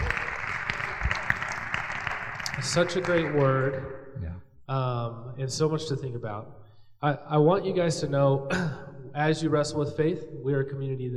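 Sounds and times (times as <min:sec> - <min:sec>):
audience applause: 0:00.0 - 0:03.8
speech: 0:02.6 - 0:11.1.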